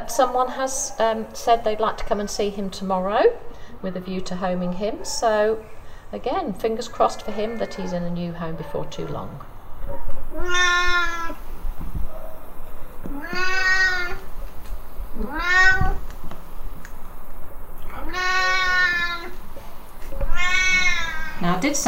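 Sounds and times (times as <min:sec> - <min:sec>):
low hum: 0:00.0 - 0:21.8
speech: 0:00.1 - 0:10.8, 0:15.2 - 0:16.0, 0:21.4 - 0:21.8
Siamese cat meowing loudly in a cattery: 0:10.2 - 0:11.5, 0:13.1 - 0:14.3, 0:15.2 - 0:16.1, 0:17.9 - 0:19.4, 0:20.2 - 0:21.6.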